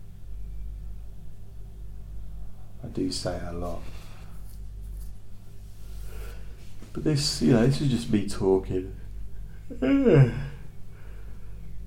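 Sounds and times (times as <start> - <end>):
speech: 2.8 - 4.0, 6.9 - 9.0, 9.7 - 10.5
person yawning: 9.7 - 10.7.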